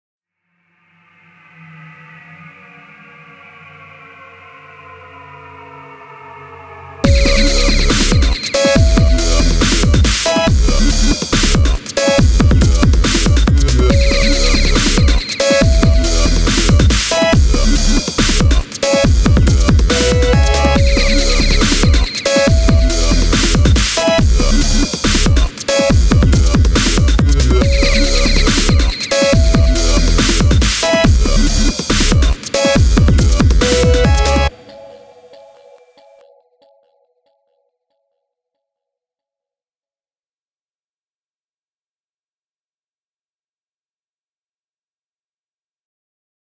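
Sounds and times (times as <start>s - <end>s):
dubstep intro music: 7.0s - 36.2s.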